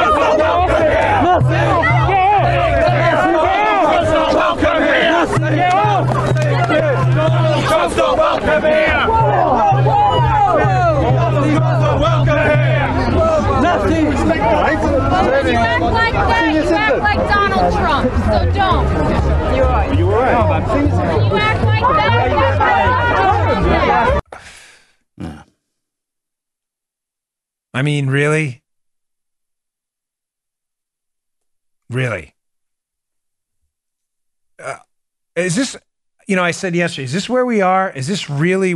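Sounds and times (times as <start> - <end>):
people grunting in a scuffle: 0.0 - 13.9, 25.2 - 25.5, 34.6 - 34.8
people shouting at an anti-Trump rally in the United Kingdom: 0.0 - 18.0, 18.6 - 24.2
crowd commotion at an anti-Trump rally: 0.0 - 24.3
speech: 27.8 - 28.6, 31.9 - 32.4, 35.4 - 38.7.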